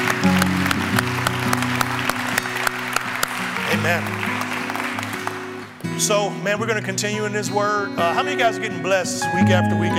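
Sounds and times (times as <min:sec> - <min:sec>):
audience hand clapping: 0:00.0 - 0:06.2
speech: 0:03.8 - 0:04.3, 0:06.0 - 0:09.9.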